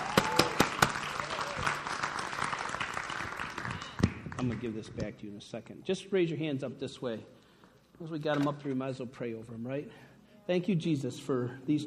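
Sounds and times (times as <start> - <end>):
audience clapping: 0.0 - 4.8
speech: 4.4 - 7.4, 8.0 - 11.8.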